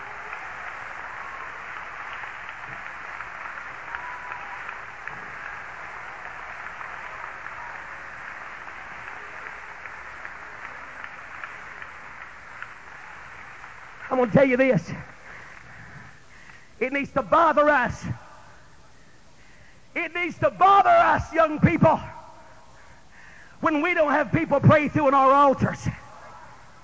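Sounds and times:
audience clapping hands: 0:00.0 - 0:16.7
speech: 0:14.2 - 0:15.2, 0:16.8 - 0:18.2, 0:20.1 - 0:22.1, 0:23.6 - 0:26.0.

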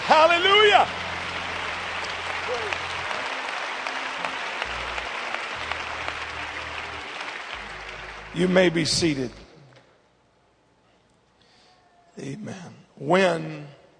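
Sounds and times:
audience clapping hands: 0:00.0 - 0:09.8
speech: 0:00.2 - 0:01.0, 0:08.4 - 0:09.4, 0:12.5 - 0:13.7.

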